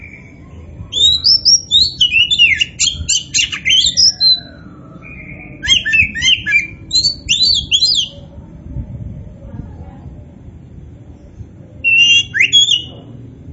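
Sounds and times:
Oriental magpie-robin song: 0.0 - 8.2, 11.8 - 13.0.

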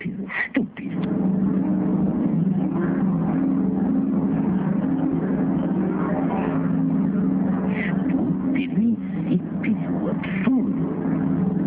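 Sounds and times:
motorboat droning: 0.0 - 11.6.

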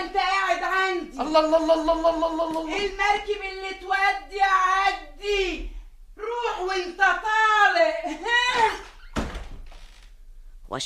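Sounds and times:
speech: 1.1 - 5.8, 6.4 - 8.9
door being shut behind someone: 8.7 - 10.2.

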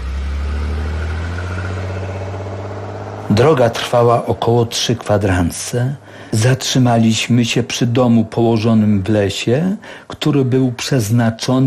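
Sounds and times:
car engine running on a drive through Głuchołazy to Prudnik in darkness: 0.0 - 6.3
speech: 3.4 - 11.6.

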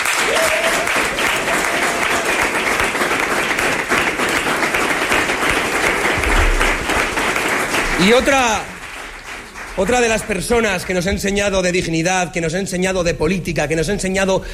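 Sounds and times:
large crowd applauding at a 2026 Aragón election rally: 0.0 - 11.1
speech: 8.0 - 8.7, 9.8 - 14.5.

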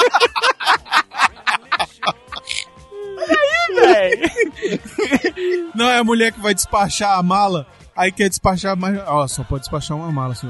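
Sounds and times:
laughter: 0.0 - 6.0
rapid breathy vocal bursts: 2.3 - 3.3, 4.5 - 5.8
speech: 5.8 - 10.4.

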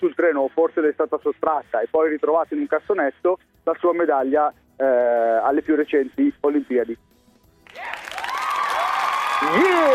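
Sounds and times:
speech: 0.0 - 7.2, 9.4 - 9.9
applause: 7.6 - 9.9.

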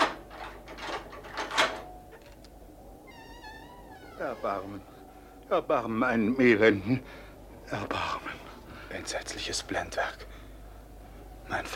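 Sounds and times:
keys rattling in the lock of a tower prison door: 0.0 - 2.6
speech: 4.2 - 10.3, 11.5 - 11.7.

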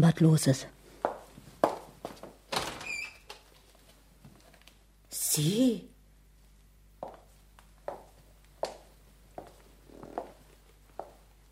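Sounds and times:
speech: 0.0 - 0.8, 5.4 - 5.9
door being unlocked and opened: 2.5 - 3.3
door high squeak: 2.6 - 3.3.

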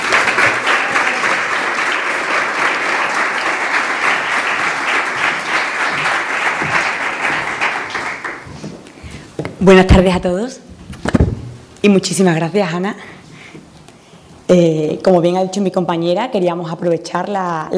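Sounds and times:
audience applause at a Women's Day event: 0.0 - 8.5
speech: 9.6 - 10.7, 11.8 - 13.1, 14.5 - 17.7.

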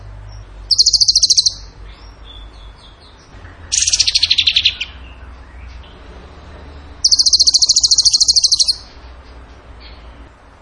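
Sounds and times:
bird singing trills: 0.7 - 1.7, 3.7 - 5.0, 7.0 - 8.9.

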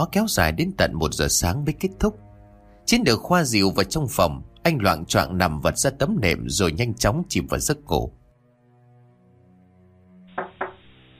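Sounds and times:
speech: 0.0 - 2.3, 2.9 - 8.2
low steady tone: 0.0 - 11.1
knocks on an earthen floor: 10.3 - 10.9.

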